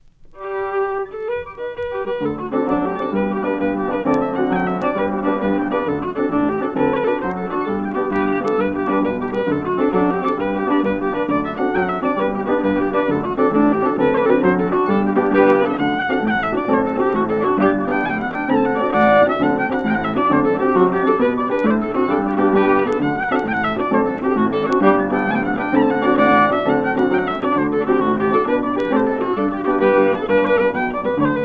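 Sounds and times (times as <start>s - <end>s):
pitched up Sliabh Luachra jigs: 0.4s - 31.4s.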